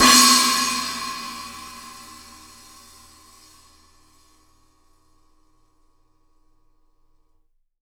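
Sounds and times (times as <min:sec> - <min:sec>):
drums: 0:00.0 - 0:04.6.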